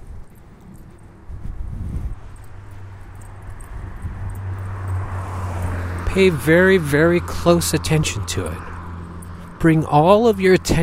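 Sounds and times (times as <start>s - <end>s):
car approaching: 0.0s - 10.8s
speech: 6.2s - 8.7s, 9.6s - 10.8s.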